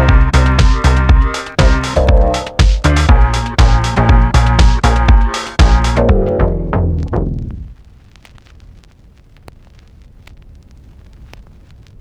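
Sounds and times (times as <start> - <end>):
lofi house music: 0.0 - 7.8.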